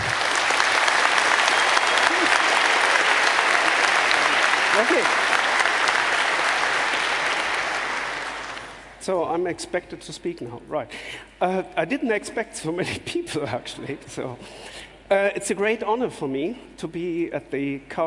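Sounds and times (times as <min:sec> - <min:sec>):
audience applause: 0:00.0 - 0:09.0
speech: 0:04.8 - 0:05.2, 0:09.0 - 0:18.0.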